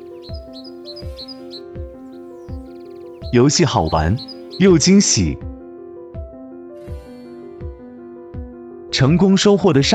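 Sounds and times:
sparrows chirping: 0.0s - 5.4s
speech: 3.3s - 5.5s, 9.0s - 9.9s.

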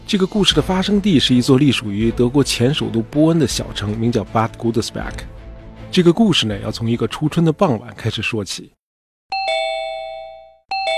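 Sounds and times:
speech: 0.1s - 8.8s
two-tone doorbell chime: 9.3s - 10.9s.

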